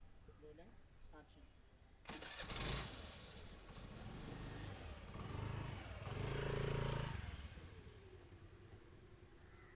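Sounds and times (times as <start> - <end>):
scooter starting and moving slowly: 2.1 - 8.5.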